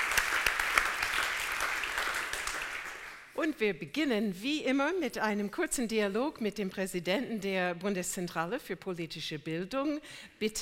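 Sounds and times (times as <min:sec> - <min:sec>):
audience applause: 0:00.0 - 0:03.3
speech: 0:03.4 - 0:10.6.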